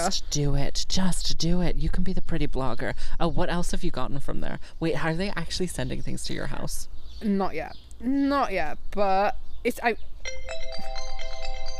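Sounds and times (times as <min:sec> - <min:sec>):
speech: 0:00.0 - 0:11.0
phone ringtone or timer electronic melody: 0:10.2 - 0:11.7.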